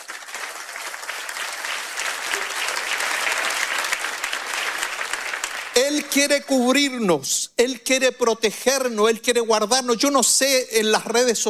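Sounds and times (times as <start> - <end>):
crowd applause: 0.0 - 6.0
speech: 5.8 - 11.4.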